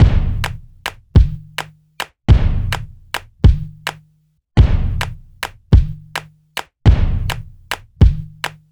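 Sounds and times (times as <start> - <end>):
breakbeat drums: 0.0 - 1.7, 2.3 - 4.0, 4.6 - 6.2, 6.9 - 8.6.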